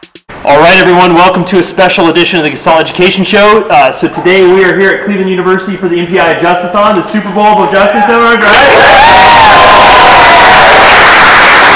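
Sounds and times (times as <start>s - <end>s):
speech: 0.4s - 9.7s
higher shouts: 8.0s - 11.7s
loud crowd cheering and whooping: 8.4s - 11.7s.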